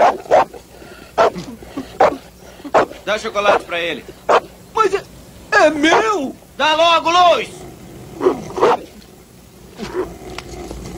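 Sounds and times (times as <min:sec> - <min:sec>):
small dog whining: 0:00.0 - 0:04.6, 0:05.7 - 0:06.2, 0:08.2 - 0:09.0, 0:09.8 - 0:10.4
small dog yapping in a dubbed film scene: 0:00.0 - 0:04.6, 0:05.8 - 0:06.2, 0:08.2 - 0:09.0
speech: 0:03.1 - 0:05.0, 0:05.6 - 0:07.6, 0:08.2 - 0:08.8.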